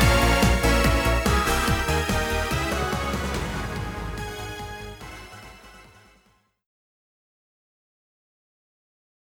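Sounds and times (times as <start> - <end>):
theme song: 0.0 - 6.3.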